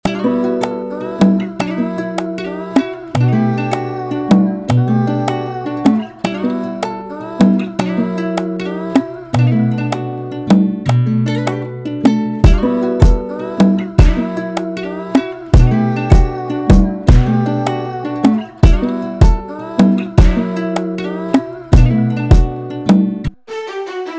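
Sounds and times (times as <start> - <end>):
beat: 0.1 - 23.4.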